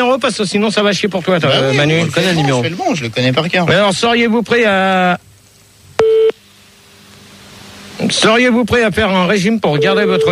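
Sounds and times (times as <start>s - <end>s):
speech: 0.2s - 5.2s, 8.1s - 10.3s
telephone ringing tone on a call to a radio phone-in show: 9.8s - 10.3s.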